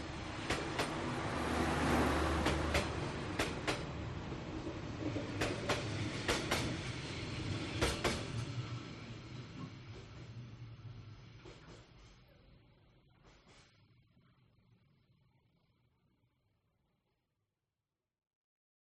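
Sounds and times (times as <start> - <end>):
train carriages passing in Hanoi Vietnam: 0.0 - 12.4.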